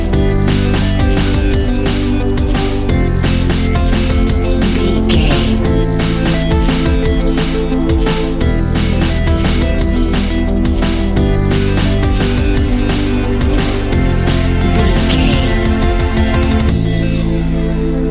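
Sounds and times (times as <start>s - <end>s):
drum and bass beat: 0.0s - 18.0s.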